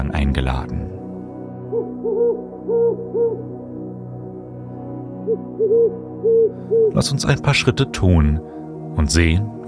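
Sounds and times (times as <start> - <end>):
speech: 0.2 - 0.9, 5.3 - 9.6
distant eagle-owl hooting: 1.7 - 3.7, 5.1 - 7.0.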